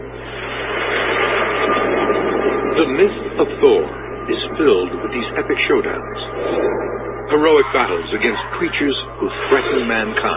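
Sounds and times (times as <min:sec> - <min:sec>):
thunder: 0:00.2 - 0:08.2
speech: 0:02.8 - 0:10.3.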